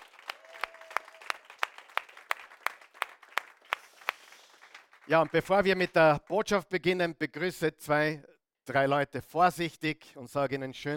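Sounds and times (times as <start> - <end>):
audience applause: 0.0 - 6.0
speech: 5.1 - 10.9.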